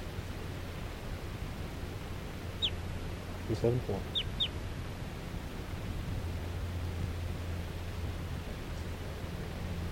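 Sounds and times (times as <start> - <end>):
hiss and low rumble: 0.0 - 9.9
crossbill call: 2.6 - 2.8, 4.1 - 4.6
speech: 3.5 - 4.2.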